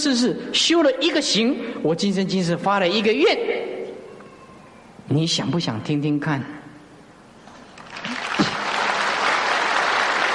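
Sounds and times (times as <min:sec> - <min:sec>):
speech: 0:00.0 - 0:03.8, 0:05.1 - 0:06.6
audience applause: 0:07.8 - 0:10.3.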